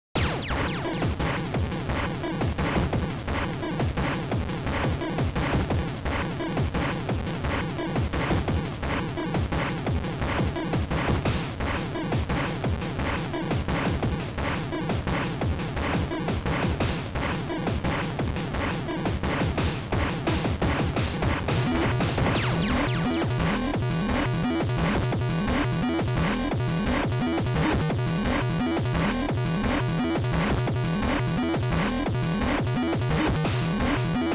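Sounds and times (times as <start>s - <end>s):
LSDj reese drum and bass beat: 0.2s - 34.3s.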